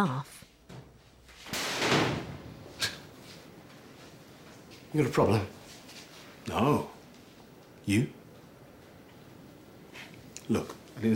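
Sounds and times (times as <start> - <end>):
speech: 0.0 - 0.4, 4.9 - 5.6, 6.5 - 7.0, 7.9 - 8.2, 10.5 - 11.1
metal locker door slammed shut: 1.4 - 3.0.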